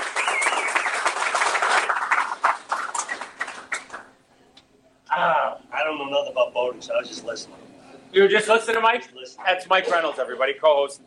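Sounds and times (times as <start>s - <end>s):
audience applause: 0.0s - 4.1s
speech: 6.3s - 11.0s.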